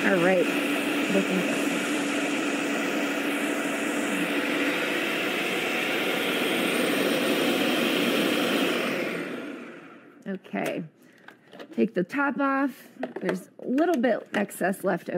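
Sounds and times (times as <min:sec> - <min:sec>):
blender running: 0:00.0 - 0:10.2
speech: 0:00.1 - 0:01.6, 0:11.8 - 0:15.1.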